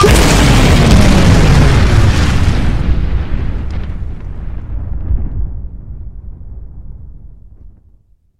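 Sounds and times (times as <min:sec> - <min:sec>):
explosion: 0:00.0 - 0:08.0.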